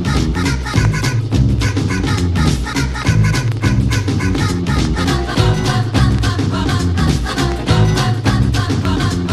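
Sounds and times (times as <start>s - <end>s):
short piano groove: 0.2s - 9.3s.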